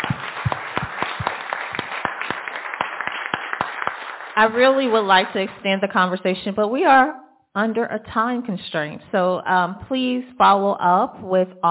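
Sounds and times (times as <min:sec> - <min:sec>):
audience applause: 0:00.0 - 0:05.3
speech: 0:04.4 - 0:11.7.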